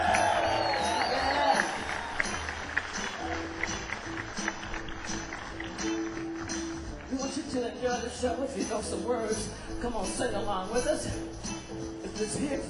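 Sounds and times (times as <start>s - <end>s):
audience applause and cheering: 0.0s - 7.2s
speech: 8.1s - 12.6s.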